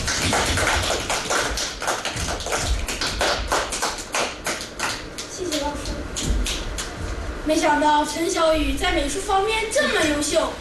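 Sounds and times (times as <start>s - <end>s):
class applause: 0.0s - 7.0s
speech: 7.5s - 10.5s.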